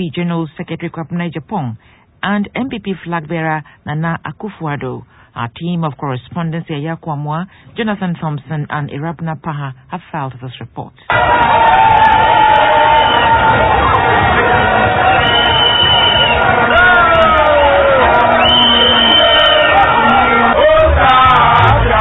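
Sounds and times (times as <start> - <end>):
speech: 0.0 - 12.4
massive crowd shouting and cheering at Kwame Nkrumah Circle: 11.1 - 21.9.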